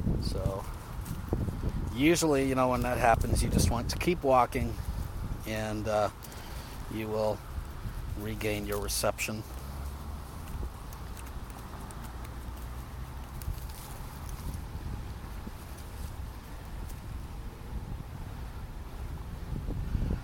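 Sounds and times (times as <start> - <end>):
wind buffeting the microphone on a breezy day outdoors: 0.0 - 20.2
speech: 0.2 - 0.8, 2.0 - 7.5, 8.2 - 9.6
faint rustles and ticks: 0.2 - 17.4.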